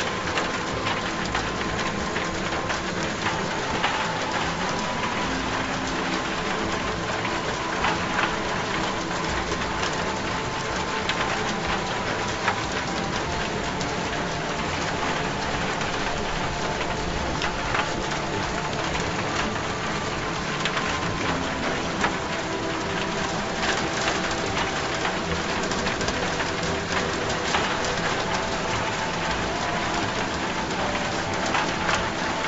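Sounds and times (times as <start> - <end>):
rain: 0.0 - 32.4.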